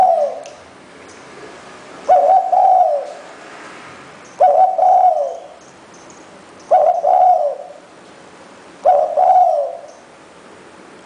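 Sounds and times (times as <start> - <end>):
spotted dove cooing: 0.0 - 0.6, 2.0 - 3.2, 4.4 - 5.6, 6.7 - 7.9, 8.8 - 10.0.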